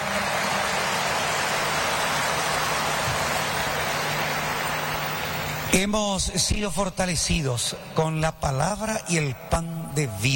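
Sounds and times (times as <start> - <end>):
audience applause: 0.0 - 5.8
speech: 5.7 - 10.3.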